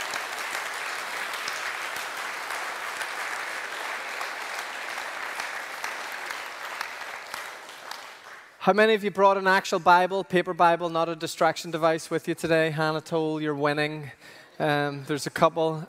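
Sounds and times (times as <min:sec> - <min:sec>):
crowd applauding: 0:00.0 - 0:08.6
speech: 0:08.6 - 0:15.8.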